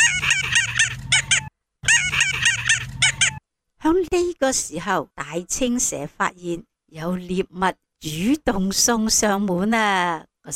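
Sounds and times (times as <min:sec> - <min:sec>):
groundhog shrill chirping calls: 0:00.0 - 0:03.4
speech: 0:03.9 - 0:10.5.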